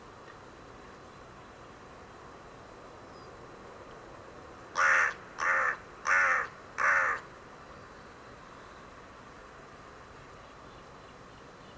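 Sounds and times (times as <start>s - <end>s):
bird hoarse caws: 4.8s - 7.3s.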